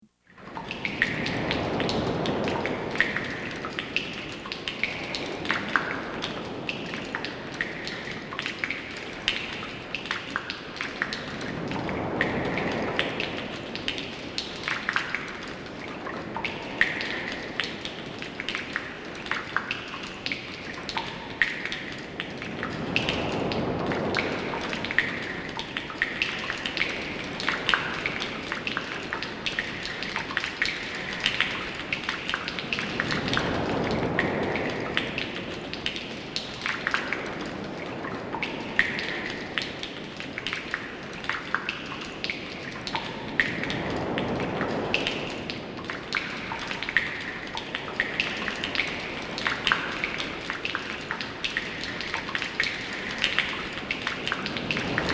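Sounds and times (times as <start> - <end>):
cave ambience: 0.3 - 55.1.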